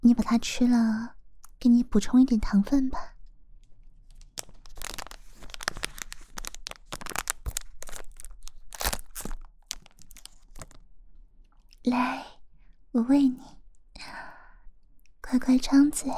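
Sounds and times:
speech: 0:00.0 - 0:03.1, 0:11.8 - 0:12.3, 0:12.9 - 0:14.1, 0:15.3 - 0:16.1
chocolate bar wrapper crinkling and tearing: 0:04.0 - 0:10.8.

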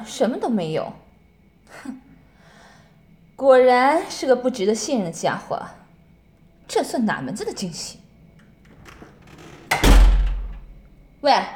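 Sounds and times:
speech: 0:00.0 - 0:01.0, 0:01.7 - 0:02.0, 0:03.4 - 0:05.8, 0:06.7 - 0:08.0, 0:11.2 - 0:11.5
door being shut: 0:08.4 - 0:10.9.

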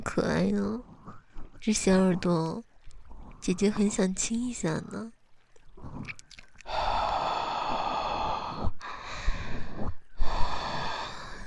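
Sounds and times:
speech: 0:00.2 - 0:00.9, 0:01.6 - 0:02.7, 0:03.4 - 0:05.2
soft breathy blowing into an ear: 0:06.7 - 0:11.4.

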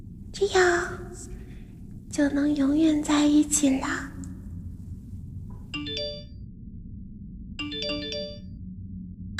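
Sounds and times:
speech: 0:00.4 - 0:01.4, 0:02.1 - 0:04.1
phone message notification tone: 0:05.8 - 0:06.3, 0:07.6 - 0:08.4.

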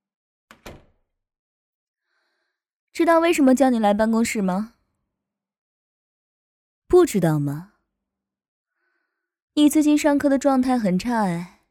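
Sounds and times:
door shut and latching: 0:00.5 - 0:01.0
speech: 0:03.0 - 0:04.8, 0:06.9 - 0:07.7, 0:09.6 - 0:11.6.

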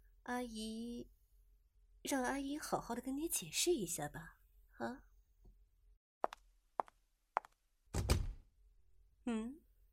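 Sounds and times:
speech: 0:00.3 - 0:01.2, 0:02.0 - 0:05.1, 0:09.3 - 0:09.6
door being pushed shut: 0:07.9 - 0:08.5.

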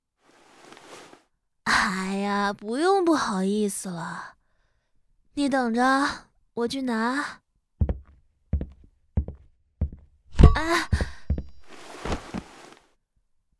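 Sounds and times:
speech: 0:01.8 - 0:04.4, 0:05.4 - 0:07.4, 0:10.6 - 0:11.0
foot kicking corner of chest of drawers: 0:11.8 - 0:12.5.

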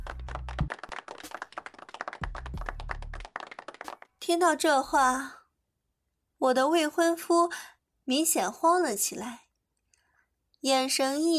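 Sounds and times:
audience clapping: 0:00.0 - 0:04.3
speech: 0:04.3 - 0:05.4, 0:06.4 - 0:09.4, 0:10.6 - 0:11.3.

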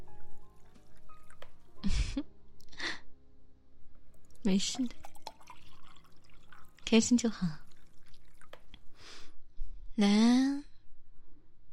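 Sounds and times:
faint drips: 0:00.0 - 0:01.8, 0:04.1 - 0:09.1
liquid poured into a glass: 0:00.1 - 0:01.8, 0:04.1 - 0:09.0
speech: 0:04.4 - 0:05.0, 0:06.9 - 0:07.6, 0:10.0 - 0:10.6.

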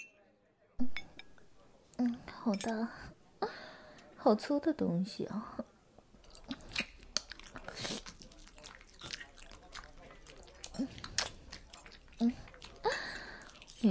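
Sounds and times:
speech: 0:02.0 - 0:03.1, 0:04.2 - 0:05.7
biting and chewing candied hawthorn tanghulu: 0:06.2 - 0:13.8.

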